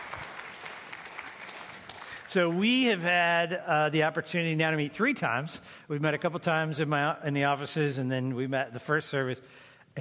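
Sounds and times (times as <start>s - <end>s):
audience clapping: 0.0s - 3.0s
speech: 2.3s - 9.9s.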